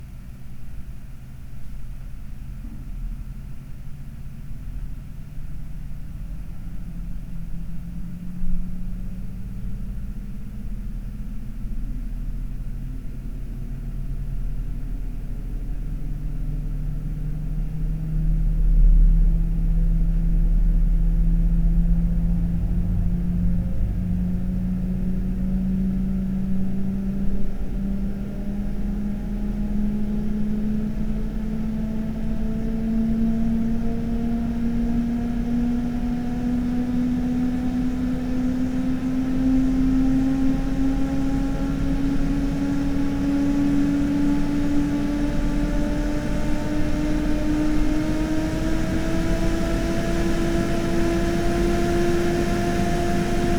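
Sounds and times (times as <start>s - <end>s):
computer case fan running for a long time: 6.2s - 53.5s.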